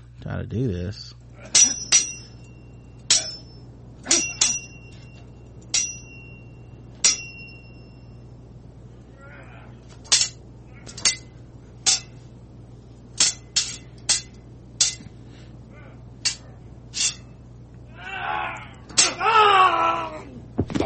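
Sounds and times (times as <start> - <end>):
low steady hum: 0.0 - 20.8
speech: 0.3 - 2.0
metallic sword clangs sound effect: 1.4 - 2.5, 3.1 - 8.0, 10.1 - 12.2, 13.2 - 15.1, 16.2 - 16.4, 17.0 - 17.4, 18.9 - 19.2.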